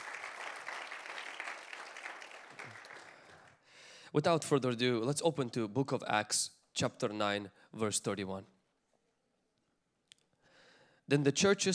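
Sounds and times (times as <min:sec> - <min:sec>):
round of applause: 0:00.0 - 0:03.6
speech: 0:04.1 - 0:08.6, 0:11.1 - 0:11.7.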